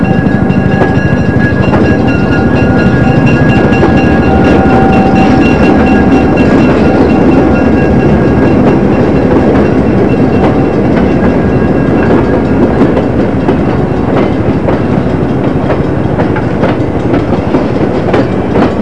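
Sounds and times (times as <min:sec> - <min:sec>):
trains: 0:00.0 - 0:18.8.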